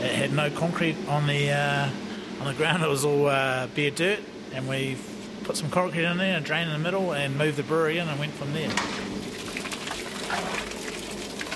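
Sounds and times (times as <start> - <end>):
speech: 0.2 - 9.1
water rushing as a brewer mashes in grain for a pale ale: 9.2 - 11.5.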